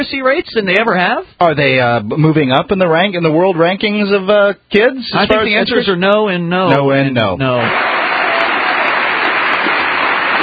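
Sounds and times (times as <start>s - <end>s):
speech: 0.0s - 8.0s
audience applause during a presidential State of the Union address: 7.6s - 10.4s.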